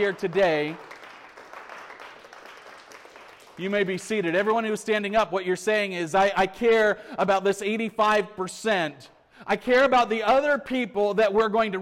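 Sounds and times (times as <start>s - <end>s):
speech: 0.0s - 0.9s, 3.6s - 11.7s
audience applause: 0.0s - 4.0s.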